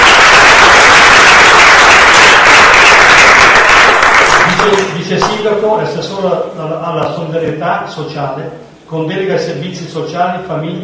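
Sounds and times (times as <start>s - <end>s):
audience applause: 0.0s - 5.0s
speech: 5.4s - 10.8s.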